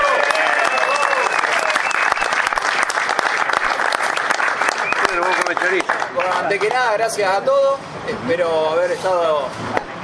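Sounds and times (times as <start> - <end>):
cheers and voices: 0.0 - 2.0
audience applause: 0.0 - 6.7
speech: 5.7 - 9.9.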